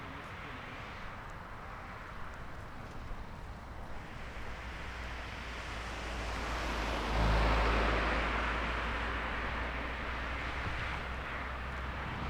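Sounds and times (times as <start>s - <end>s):
cars passing on a road: 4.2s - 12.2s.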